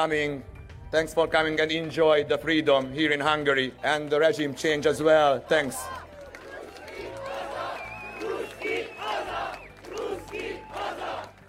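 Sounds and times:
speech: 0.0 - 6.1
crowd shouting in the streets: 5.5 - 11.3.

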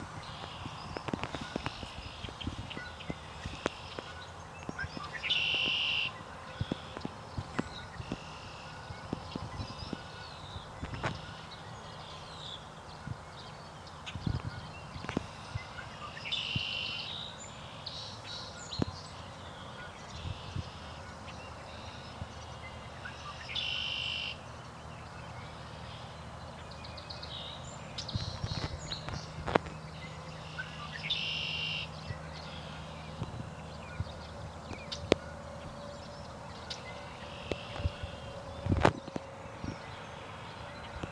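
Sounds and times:
morning sounds at 6th hole tee off: 0.0 - 41.1.

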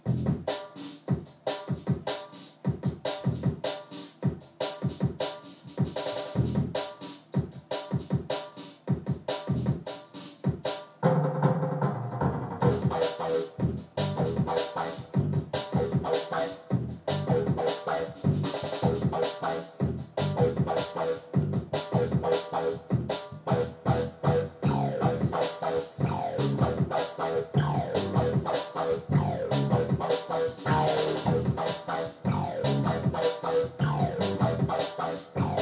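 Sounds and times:
drum and bass music recorded on a phone: 0.0 - 35.6.

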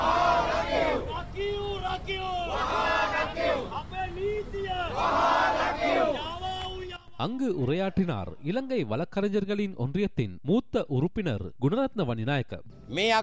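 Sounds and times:
protest crowd chanting outside a court: 0.0 - 6.6
speech: 7.2 - 13.2.

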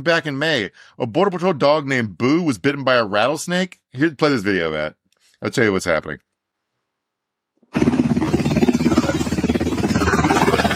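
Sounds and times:
speech: 0.0 - 6.3, 7.7 - 8.0
medevac helicopter landing: 7.7 - 10.7.

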